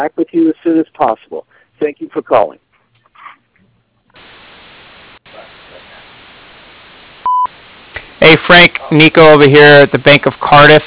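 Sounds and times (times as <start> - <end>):
speech: 0.0 - 2.7, 8.2 - 10.8
line static hiss: 0.0 - 10.8
voicemail beep: 7.2 - 7.5.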